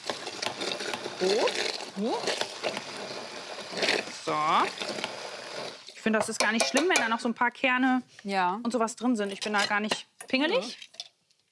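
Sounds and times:
blender pureeing frozen berries: 0.2s - 6.0s
speech: 1.2s - 5.2s, 6.0s - 10.8s.

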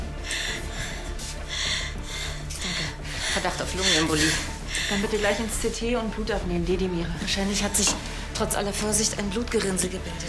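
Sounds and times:
patient breathing in and out during a medical examination: 0.0s - 5.2s
speech: 3.4s - 10.2s.

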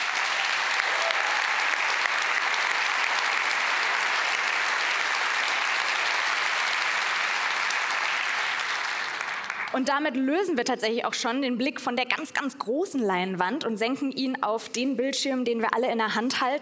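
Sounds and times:
audience applause: 0.0s - 9.8s
speech: 9.8s - 16.5s.

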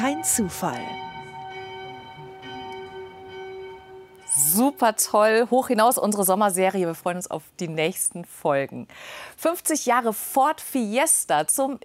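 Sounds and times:
church bells ringing the midday peal: 0.0s - 6.2s
speech: 0.1s - 1.0s, 4.5s - 11.8s.

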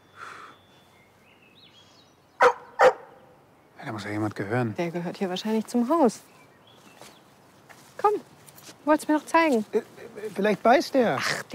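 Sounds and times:
dog barking: 2.4s - 3.2s
speech: 3.8s - 6.4s, 8.9s - 11.5s.

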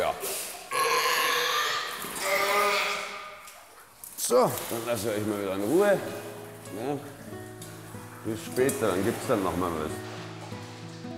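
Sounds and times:
young seal grunting: 0.7s - 3.4s
speech: 4.3s - 7.3s, 8.2s - 10.1s.

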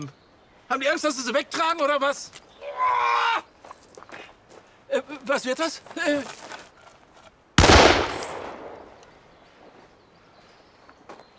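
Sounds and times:
speech: 0.0s - 3.5s, 4.9s - 6.5s
gunshot: 7.6s - 9.0s.

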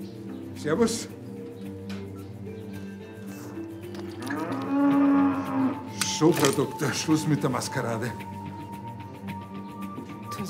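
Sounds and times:
speech: 0.0s - 1.3s, 6.2s - 8.4s
cow or calf mooing during a difficult calving: 4.2s - 5.9s.

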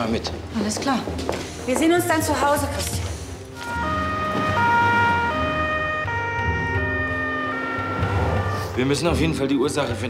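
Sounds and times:
speech: 0.0s - 3.1s, 8.8s - 10.0s
ambulance siren wailing: 3.6s - 9.0s.

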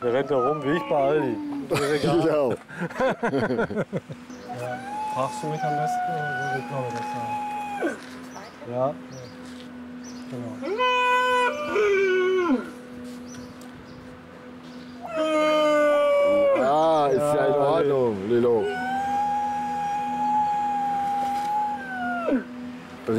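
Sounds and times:
seal pups howling: 0.0s - 1.7s, 4.4s - 8.2s, 10.6s - 12.8s, 15.0s - 17.6s, 18.4s - 22.8s
speech: 0.0s - 8.1s, 8.7s - 9.4s, 10.3s - 12.7s, 15.2s - 15.6s
laughter: 1.5s - 4.3s.

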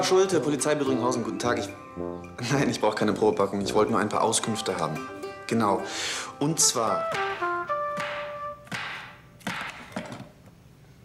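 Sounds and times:
speech: 0.0s - 7.5s
knife chopping a cucumber onto a board: 7.3s - 9.8s.

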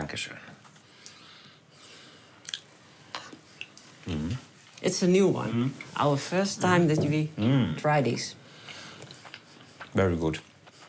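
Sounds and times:
hiss: 0.0s - 10.8s
speech: 0.2s - 0.5s, 4.1s - 8.4s, 10.0s - 10.5s
person chewing a tasting bite with dried tomato and garlic: 2.4s - 4.8s, 8.6s - 10.8s.

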